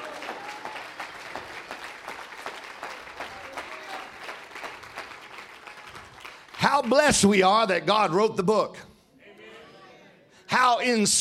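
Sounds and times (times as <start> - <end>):
audience clapping hands: 0.0 - 7.7
speech: 6.6 - 8.9, 10.5 - 11.2.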